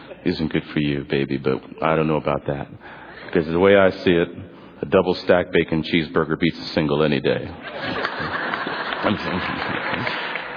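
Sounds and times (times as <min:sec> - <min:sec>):
speech: 0:00.2 - 0:08.4, 0:09.0 - 0:10.2
faint chuckles: 0:07.6 - 0:10.5
audience clapping: 0:07.7 - 0:10.5.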